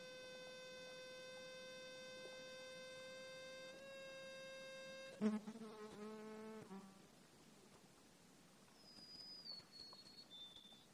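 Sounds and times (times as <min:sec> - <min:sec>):
insect wing buzz: 0:00.0 - 0:06.9
speech: 0:05.2 - 0:06.3.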